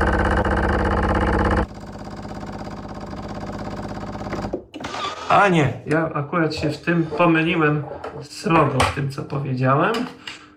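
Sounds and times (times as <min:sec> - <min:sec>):
espresso machine pump buzzing: 0:00.0 - 0:05.2
speech: 0:05.3 - 0:10.3.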